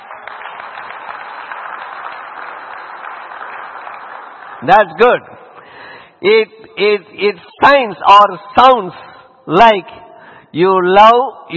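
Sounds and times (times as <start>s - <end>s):
audience applause: 0.0s - 4.9s
speech: 4.6s - 5.3s, 6.2s - 11.5s.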